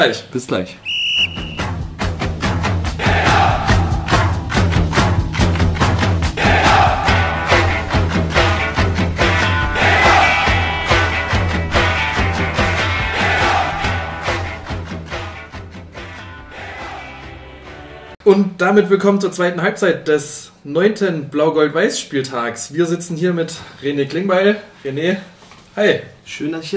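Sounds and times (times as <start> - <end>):
speech: 0.0 - 1.6, 18.3 - 26.7
entrance music with pounding beat and shouted chant-like vocals: 2.5 - 18.2.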